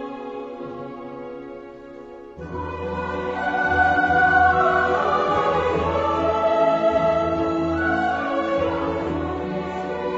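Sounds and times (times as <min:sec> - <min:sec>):
music excerpt: 0:02.4 - 0:10.1.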